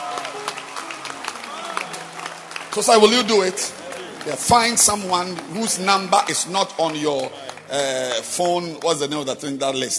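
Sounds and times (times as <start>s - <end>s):
audience clapping hands: 0.0s - 9.9s
speech: 2.8s - 9.9s.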